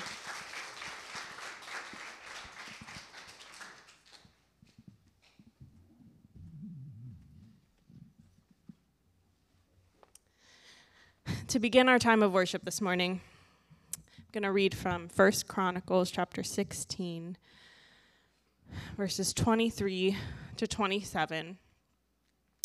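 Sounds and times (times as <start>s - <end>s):
audience clapping: 0.0s - 4.8s
speech: 11.5s - 13.3s, 14.3s - 17.6s, 18.7s - 21.6s.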